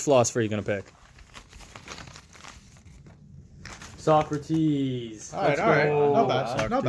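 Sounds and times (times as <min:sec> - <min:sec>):
speech: 0:00.0 - 0:01.0, 0:04.0 - 0:06.8
paper slips crinkling as a name is drawn from a hat: 0:00.0 - 0:05.5.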